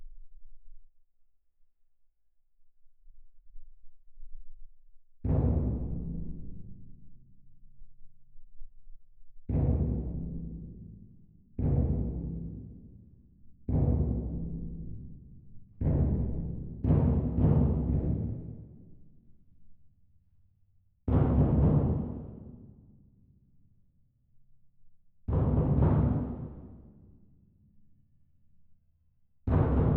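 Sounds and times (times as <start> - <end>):
percussion: 5.2 - 8.8, 9.5 - 19.9, 21.1 - 23.9, 25.3 - 28.3, 29.4 - 29.9.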